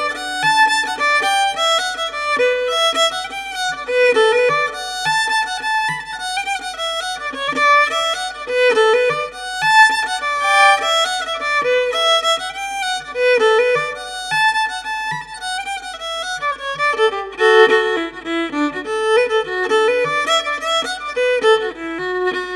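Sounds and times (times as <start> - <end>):
solo fiddle: 0.0 - 22.5.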